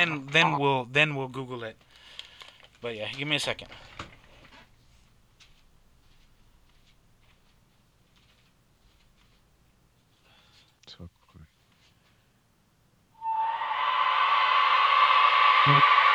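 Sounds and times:
speech: 0.0 - 2.0, 2.8 - 4.0, 15.6 - 16.0
loud whistle being blown: 13.2 - 14.6.

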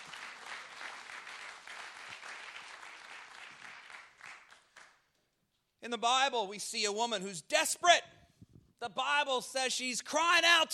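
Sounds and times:
audience clapping hands: 0.0 - 5.3
speech: 5.8 - 8.1, 8.8 - 10.7.

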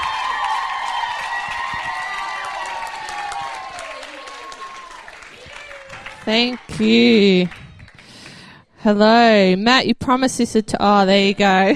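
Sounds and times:
voices cheering and whooping: 0.0 - 7.7
crowd applause: 0.0 - 8.5
speech: 6.3 - 7.6, 8.8 - 11.7.

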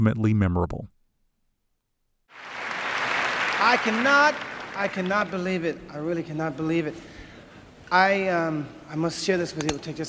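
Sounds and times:
speech: 0.0 - 1.0, 3.6 - 7.2, 7.9 - 10.0
Oscars audience applause: 2.3 - 5.6.

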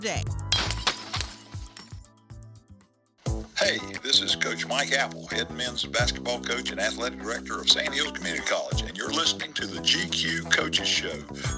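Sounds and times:
speech: 0.0 - 0.4, 3.6 - 11.5
glass shattering: 0.5 - 2.1.

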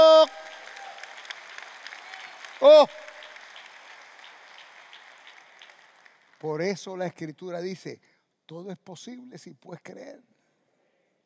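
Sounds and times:
audience applause: 0.0 - 6.7
speech: 2.6 - 3.1, 6.4 - 10.3.

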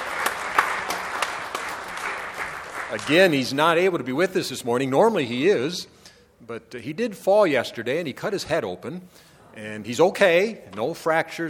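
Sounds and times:
congregation clapping during a church service: 0.0 - 4.0
speech: 2.9 - 11.4.

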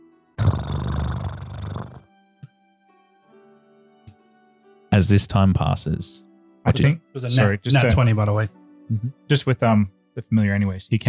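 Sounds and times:
cat purring: 0.4 - 2.0
speech: 5.0 - 11.0.

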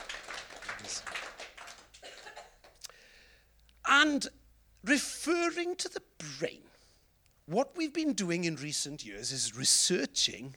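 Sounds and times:
audience applause: 0.0 - 2.7
speech: 4.0 - 6.7, 7.5 - 10.5.

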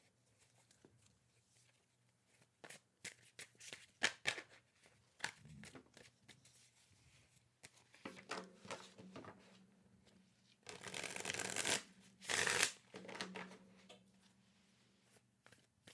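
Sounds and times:
tarot card deck riffled by hand: 2.3 - 6.4, 10.7 - 13.6, 15.4 - 15.9.

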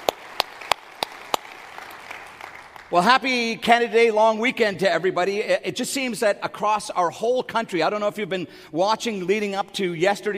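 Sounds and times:
audience applause: 0.0 - 3.1
speech: 2.9 - 10.3.

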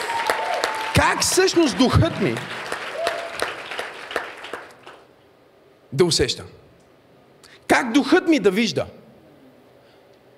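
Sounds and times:
audience applause: 0.0 - 5.1
speech: 1.0 - 2.6, 6.0 - 6.6, 7.7 - 9.0.

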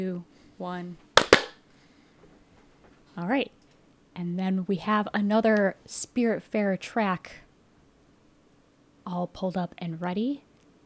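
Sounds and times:
speech: 0.0 - 1.1, 3.2 - 3.6, 4.2 - 7.4, 9.1 - 10.5
hand clap for sync: 1.2 - 1.6.

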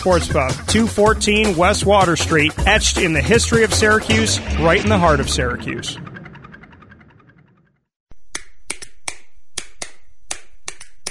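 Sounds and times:
speech: 0.0 - 6.1
hands clapping: 8.4 - 11.0.

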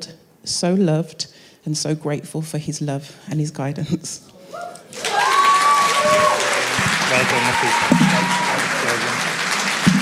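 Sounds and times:
speech: 0.5 - 4.8, 7.1 - 8.4
audience applause: 4.9 - 10.0.

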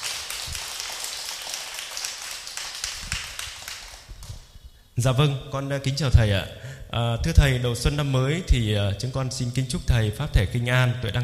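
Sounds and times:
audience applause: 0.0 - 4.1
speech: 5.0 - 11.2.

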